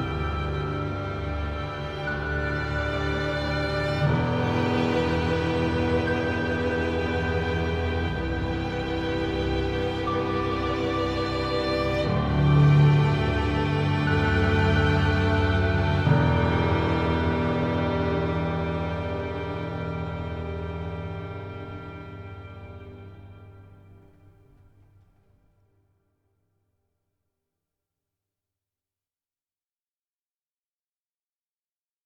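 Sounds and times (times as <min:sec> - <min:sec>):
deepening ambient music: 0:00.0 - 0:25.4.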